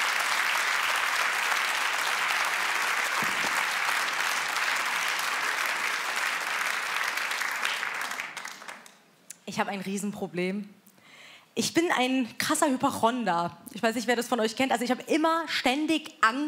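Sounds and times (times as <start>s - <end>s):
audience applause: 0.0s - 9.0s
speech: 9.5s - 10.8s, 11.6s - 16.4s.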